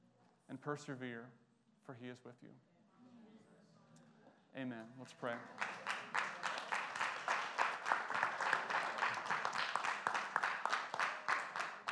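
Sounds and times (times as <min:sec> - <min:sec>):
speech: 0:00.5 - 0:02.7, 0:04.5 - 0:06.2
audience applause: 0:05.5 - 0:11.8.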